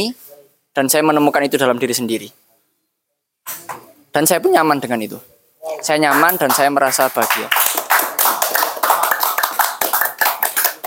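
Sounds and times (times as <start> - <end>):
speech: 0.0 - 0.2, 0.8 - 2.4, 4.2 - 7.6
hand clapping: 5.7 - 10.8.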